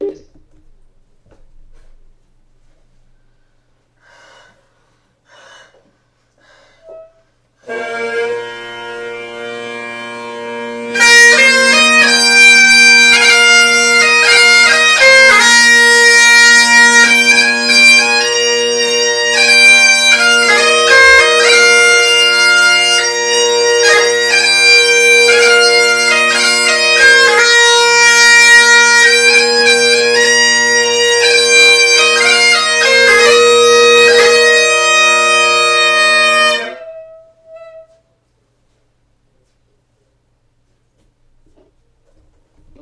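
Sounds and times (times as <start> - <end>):
bagpipes: 6.8 - 37.8.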